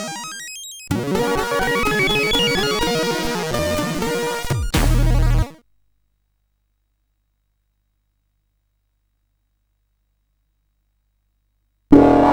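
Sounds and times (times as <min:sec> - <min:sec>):
SID CSG8580R5 chip music: 0:00.0 - 0:05.5.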